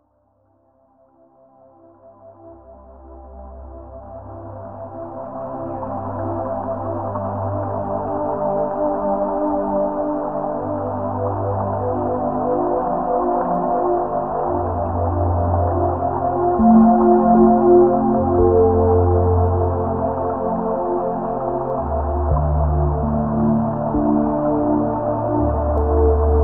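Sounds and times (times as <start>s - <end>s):
ambient music: 2.6s - 26.4s.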